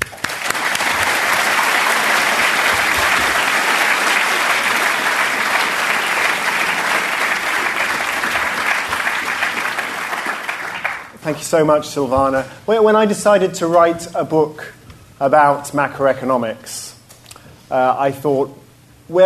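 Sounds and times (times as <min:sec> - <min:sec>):
audience applause: 0:00.0 - 0:11.2
speech: 0:11.3 - 0:16.9, 0:17.7 - 0:19.2.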